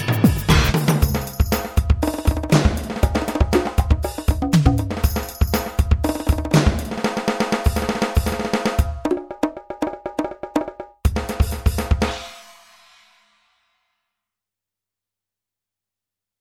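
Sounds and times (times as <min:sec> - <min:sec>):
Alesis DM5 drum machine: 0:00.0 - 0:12.2.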